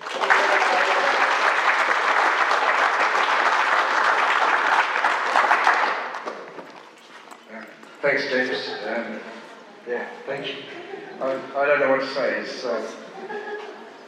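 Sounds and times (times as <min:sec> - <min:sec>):
audience applause: 0:00.0 - 0:06.8
speech: 0:08.1 - 0:13.4
laughter: 0:10.5 - 0:11.6, 0:12.9 - 0:14.0.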